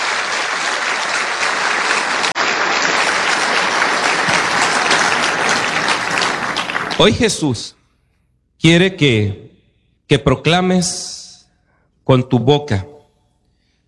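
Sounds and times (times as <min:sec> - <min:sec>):
audience applauding: 0:00.0 - 0:07.4
speech: 0:07.0 - 0:07.8, 0:08.6 - 0:09.5, 0:10.1 - 0:11.2, 0:12.1 - 0:12.9.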